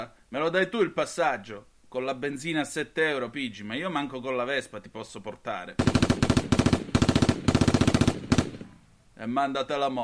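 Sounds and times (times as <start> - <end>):
speech: 0.0 - 6.3, 9.2 - 10.0
machine gun fire sound effect: 5.8 - 8.8.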